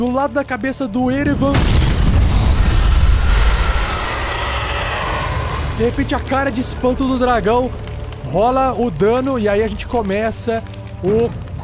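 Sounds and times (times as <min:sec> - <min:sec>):
speech: 0:00.0 - 0:02.2, 0:05.8 - 0:11.4
fireball explosion sound effect: 0:01.1 - 0:08.6.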